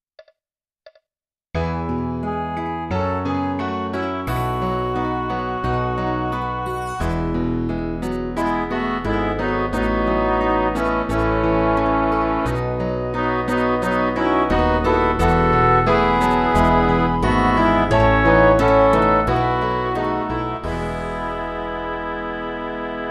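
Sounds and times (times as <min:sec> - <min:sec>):
MIDI music: 0:02.2 - 0:23.0.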